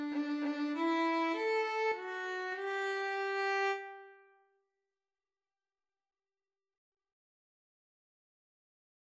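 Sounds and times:
violin and viola duet: 0:00.0 - 0:04.1.

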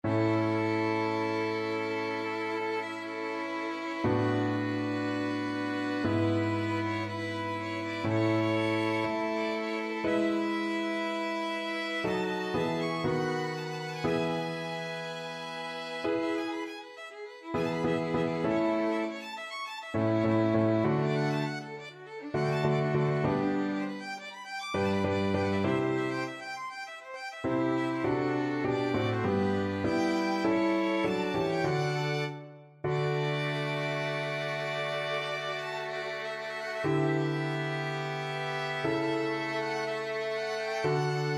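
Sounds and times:
violin trio playing: 0:00.0 - 0:41.3.

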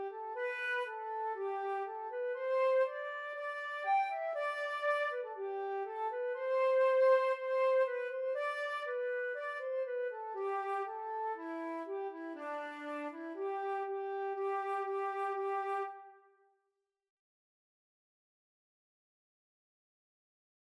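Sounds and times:
flute: 0:00.0 - 0:16.3.

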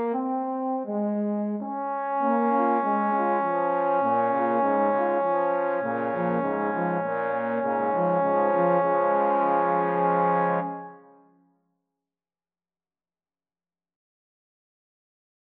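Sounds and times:
trombone quartet playing a classical piece: 0:00.0 - 0:11.0.

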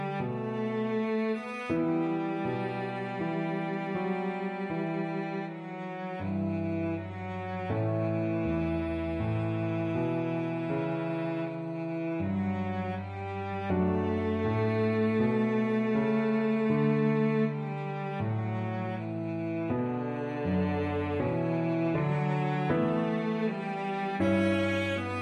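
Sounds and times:
operatic melody played on cello: 0:00.0 - 0:25.2.

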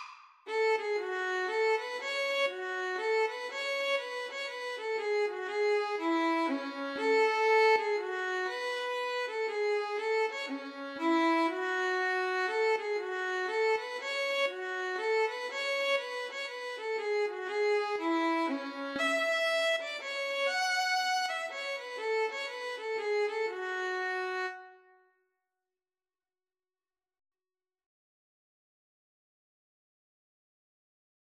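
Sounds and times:
violin and viola duet: 0:00.0 - 0:24.7.

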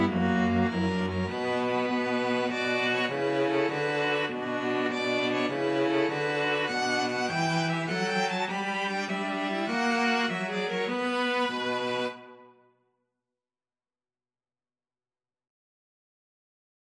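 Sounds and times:
string quartet: 0:00.0 - 0:12.5.

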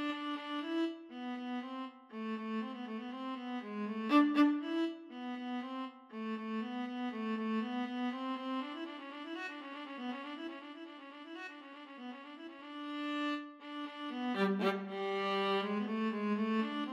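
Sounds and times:
cello: 0:00.0 - 0:08.7, 0:12.8 - 0:16.9
viola: 0:00.0 - 0:16.9.

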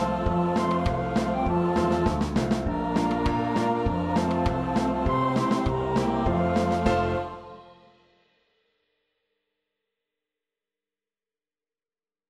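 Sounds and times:
three players performing Christmas song: 0:00.0 - 0:07.5
rhythm section: 0:00.0 - 0:07.6.

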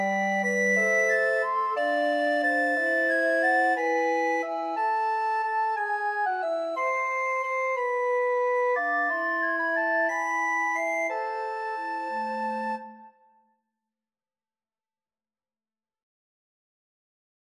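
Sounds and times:
recorder quartet: 0:00.0 - 0:13.1.

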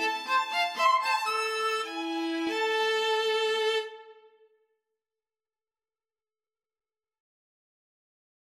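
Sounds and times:
violin and viola duet: 0:00.0 - 0:04.4.

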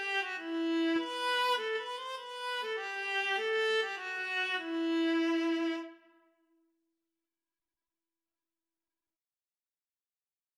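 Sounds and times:
viola duet: 0:00.0 - 0:06.0.

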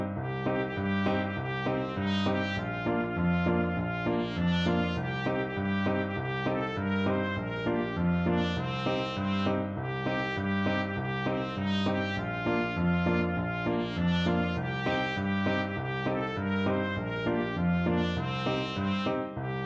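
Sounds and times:
trumpet: 0:00.2 - 0:19.6.

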